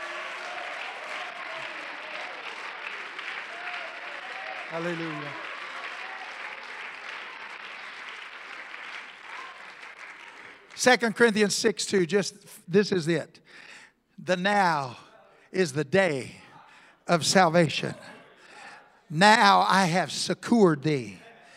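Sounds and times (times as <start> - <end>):
audience clapping hands: 0.0 - 11.8
speech: 4.7 - 5.5, 10.8 - 16.4, 17.1 - 18.2, 19.1 - 21.2.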